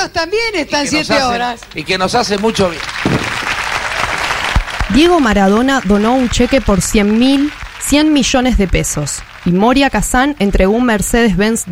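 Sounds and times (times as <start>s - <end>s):
speech: 0.0s - 3.3s, 4.9s - 11.6s
crowd clapping: 1.1s - 11.6s.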